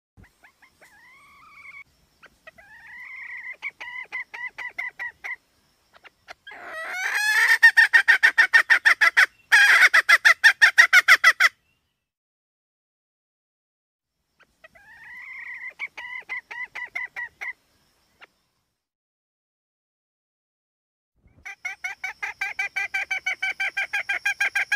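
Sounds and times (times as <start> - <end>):
red junglefowl hen clucking: 0.2 - 11.6, 14.4 - 17.6, 21.4 - 24.7.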